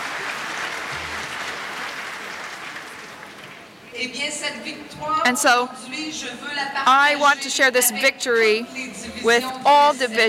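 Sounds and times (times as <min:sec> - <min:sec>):
round of applause: 0:00.0 - 0:03.8
speech: 0:04.0 - 0:10.2.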